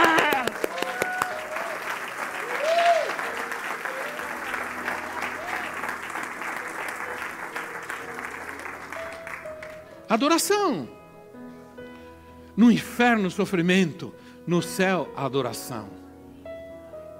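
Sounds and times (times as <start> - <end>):
audience applauding: 0.0 - 10.0
speech: 10.1 - 11.0, 12.6 - 16.0.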